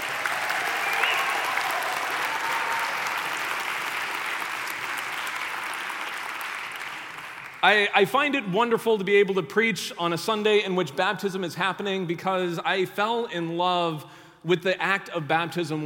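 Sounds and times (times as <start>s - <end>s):
audience applause: 0.0s - 7.6s
speech: 7.6s - 15.8s.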